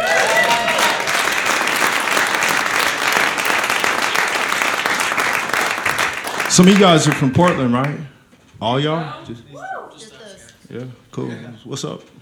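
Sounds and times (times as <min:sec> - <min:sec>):
audience applause for musicians: 0:00.0 - 0:08.0
speech: 0:06.6 - 0:12.2.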